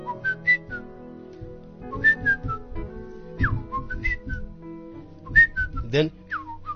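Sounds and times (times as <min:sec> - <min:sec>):
person whistling a bird-like melody: 0:00.0 - 0:00.9, 0:01.9 - 0:02.7, 0:03.4 - 0:04.5, 0:05.2 - 0:06.7
speech: 0:05.9 - 0:06.2.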